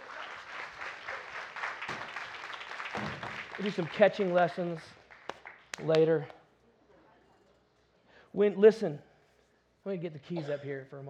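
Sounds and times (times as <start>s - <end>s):
faint audience clapping: 0.0s - 6.5s
speech: 3.6s - 5.0s, 5.8s - 6.4s, 8.4s - 9.1s, 9.8s - 11.0s.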